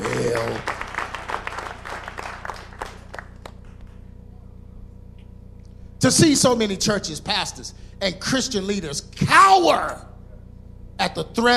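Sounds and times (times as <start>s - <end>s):
audience clapping: 0.0s - 4.1s
low hum: 0.0s - 11.5s
speech: 6.1s - 10.1s, 11.0s - 11.5s.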